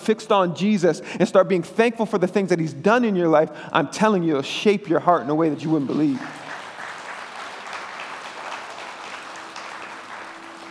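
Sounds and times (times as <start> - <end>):
speech: 0.0 - 6.4
crowd applauding: 5.4 - 10.6.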